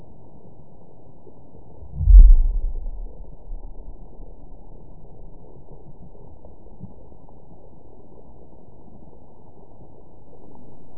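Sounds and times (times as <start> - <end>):
amplified seismic pulse: 1.8 - 4.6.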